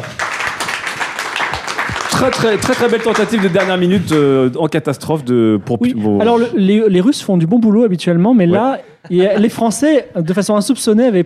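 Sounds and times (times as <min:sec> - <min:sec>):
audience clapping: 0:00.0 - 0:04.4
speech: 0:02.2 - 0:11.2
laughter: 0:08.6 - 0:10.6.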